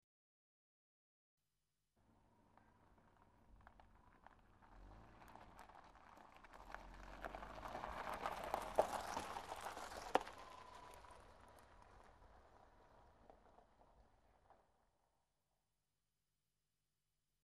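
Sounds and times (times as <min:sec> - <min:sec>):
car pulling up on gravel: 0:02.1 - 0:14.8.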